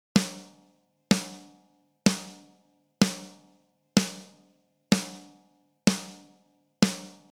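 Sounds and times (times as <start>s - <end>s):
snare drum: 0.0s - 7.3s.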